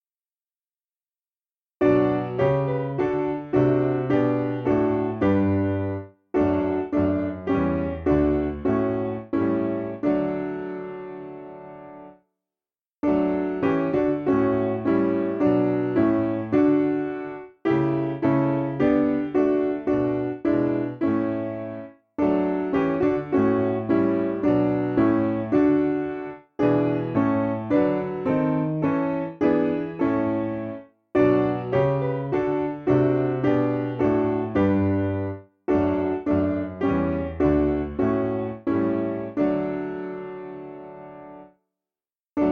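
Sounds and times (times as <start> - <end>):
piano: 1.8 - 12.3, 13.0 - 41.6.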